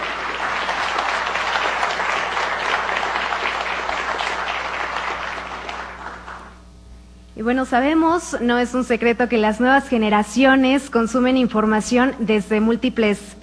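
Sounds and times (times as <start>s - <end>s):
audience applause: 0.0s - 6.6s
speech: 7.4s - 13.4s.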